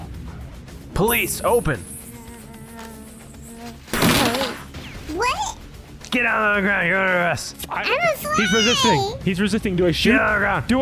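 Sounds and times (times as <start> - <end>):
speech: 1.0 - 1.9, 6.1 - 10.8
fly buzzing: 1.1 - 4.8.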